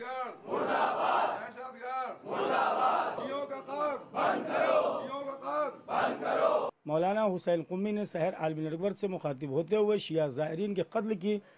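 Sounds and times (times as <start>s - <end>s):
crowd chanting slogans against terrorism at a protest: 0.3s - 6.7s
speech: 7.0s - 11.5s.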